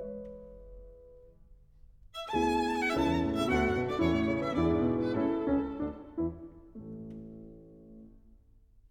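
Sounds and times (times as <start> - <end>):
violin sonata in A: 2.1 - 7.1.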